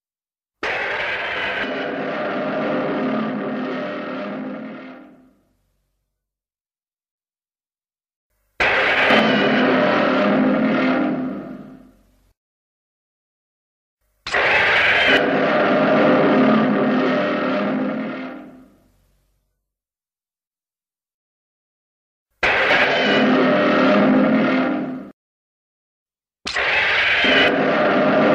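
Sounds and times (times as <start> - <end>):
roaring: 0.6 - 5.4, 8.6 - 12.0, 14.3 - 18.9, 22.4 - 25.1, 26.6 - 28.3.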